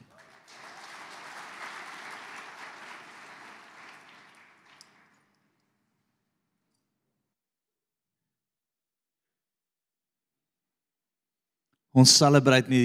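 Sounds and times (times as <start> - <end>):
audience applauding: 0.0 - 5.4
speech: 12.0 - 12.8.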